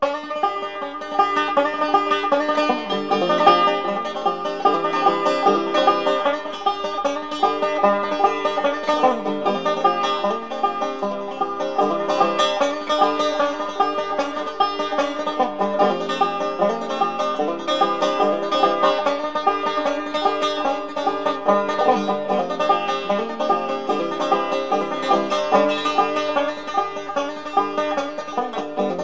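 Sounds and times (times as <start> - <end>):
banjo tune: 0.0 - 29.0.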